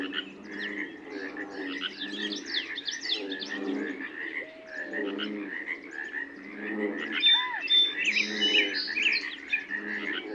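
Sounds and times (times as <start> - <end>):
bull frogs and pacific chorus frogs croaking: 0.0 - 10.3
dawn chorus of birds whistling and chirping at Sauvie Island Wildlife Area: 1.7 - 3.7, 4.4 - 5.0, 7.2 - 9.9.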